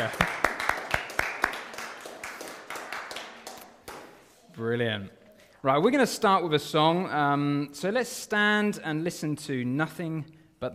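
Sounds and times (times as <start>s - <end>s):
audience applause: 0.0s - 4.2s
speech: 4.6s - 10.7s.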